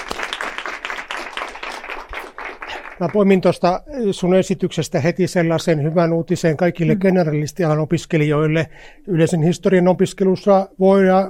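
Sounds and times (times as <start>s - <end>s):
audience clapping after a presentation at a talk: 0.0s - 3.6s
speech: 3.0s - 11.2s.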